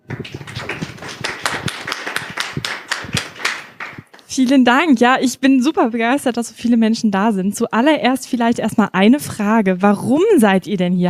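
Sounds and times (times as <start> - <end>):
audience applause: 0.0 - 4.3
speech: 0.1 - 0.6, 4.4 - 11.0.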